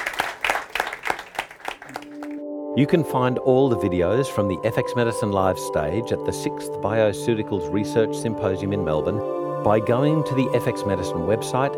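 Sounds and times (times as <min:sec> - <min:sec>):
audience applause: 0:00.0 - 0:02.4
speech: 0:02.8 - 0:11.7.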